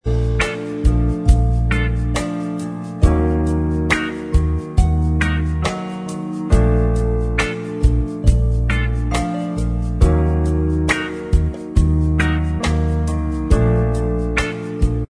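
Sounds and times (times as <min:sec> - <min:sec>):
instrumental music: 0:00.0 - 0:15.0.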